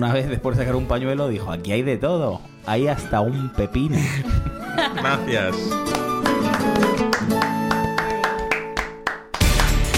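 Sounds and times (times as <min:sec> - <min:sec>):
speech: 0:00.0 - 0:06.0, 0:06.6 - 0:07.6
laughter: 0:04.0 - 0:05.6
audience applause: 0:05.9 - 0:09.9.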